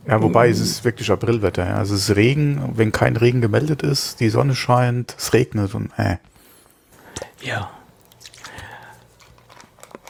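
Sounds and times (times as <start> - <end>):
speech: 0.1 - 6.3, 7.4 - 7.8
person sipping from a bottle: 6.9 - 10.0.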